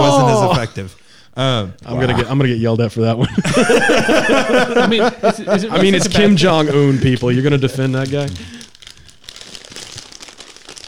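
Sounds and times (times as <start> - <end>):
speech: 0.6 - 8.6
laughter: 3.2 - 8.0
opening a bag of chips: 7.4 - 10.8.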